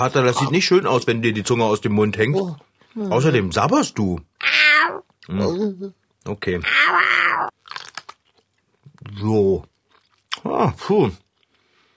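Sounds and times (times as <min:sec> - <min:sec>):
speech: 0:00.0 - 0:04.3, 0:05.3 - 0:07.5, 0:09.1 - 0:09.7, 0:10.4 - 0:11.2
biting into a crunchy sausage: 0:07.5 - 0:09.0.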